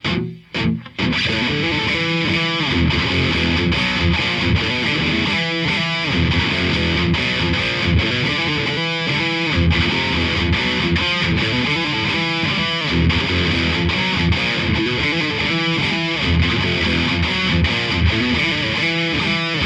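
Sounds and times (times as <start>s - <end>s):
riff tapes: 0.0s - 19.6s.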